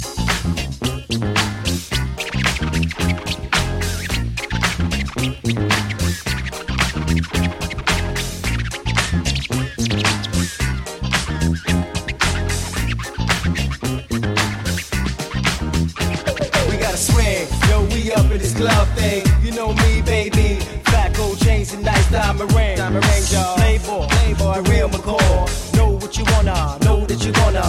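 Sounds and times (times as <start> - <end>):
funk music: 0.0 - 27.6.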